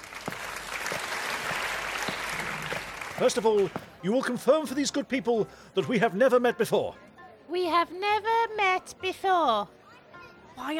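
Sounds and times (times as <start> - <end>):
audience applause: 0.0 - 3.8
speech: 3.2 - 9.8, 10.6 - 10.7.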